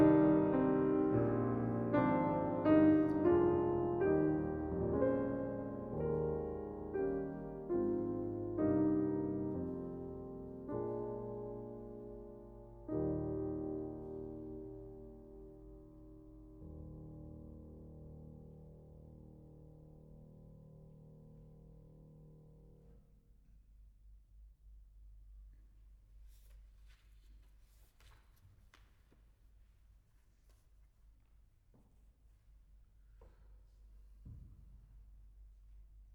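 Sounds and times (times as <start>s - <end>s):
British Isles folk songs on piano: 0.0s - 22.9s.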